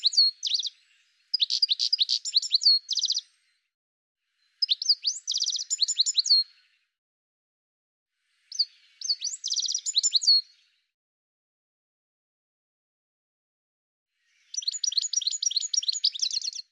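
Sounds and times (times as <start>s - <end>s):
bird song with rapid varied chirps and trills: 0.0s - 3.4s, 4.5s - 6.6s, 8.5s - 10.5s, 14.3s - 16.7s.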